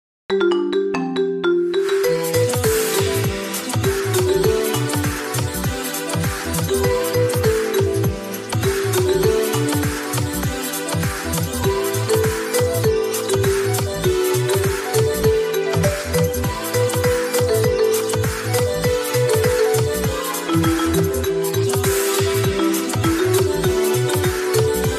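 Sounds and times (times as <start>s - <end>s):
marimba remix: 0.3s - 24.9s.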